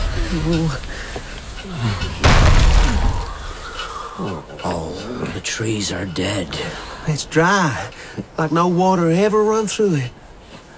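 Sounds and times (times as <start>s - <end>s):
speech: 0.3s - 2.2s, 4.2s - 10.2s
heavy gate being shut: 2.0s - 4.0s.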